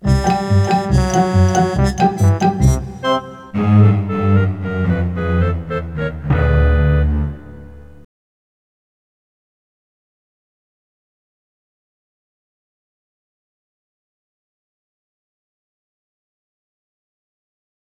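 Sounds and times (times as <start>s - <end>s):
in-game music: 0.0s - 6.2s.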